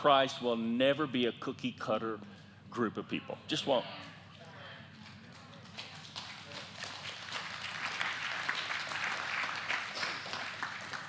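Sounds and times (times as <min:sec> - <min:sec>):
speech: 0:00.0 - 0:04.1
audience applause: 0:06.7 - 0:11.0.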